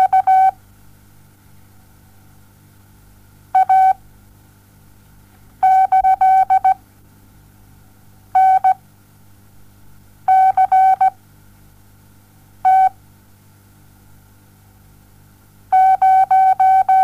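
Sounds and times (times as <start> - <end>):
morse code beeps: 0.0 - 0.6, 3.6 - 4.0, 5.6 - 6.8, 8.4 - 8.8, 10.3 - 11.1, 12.7 - 13.0, 15.8 - 17.0.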